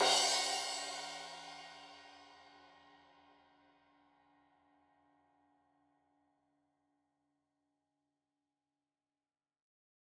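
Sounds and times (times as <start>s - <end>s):
15 inch crash cymbal edge hit: 0.0s - 2.2s.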